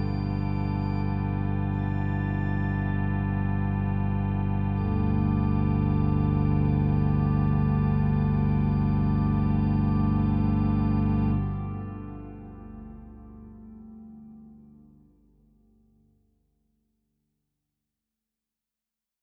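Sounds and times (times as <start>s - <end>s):
organ playing celeste mutations: 0.0s - 15.0s.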